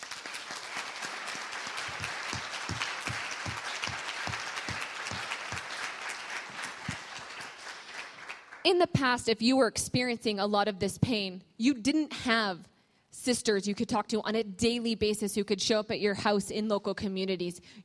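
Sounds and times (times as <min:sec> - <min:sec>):
audience clapping: 0:00.0 - 0:08.8
speech: 0:08.7 - 0:17.8.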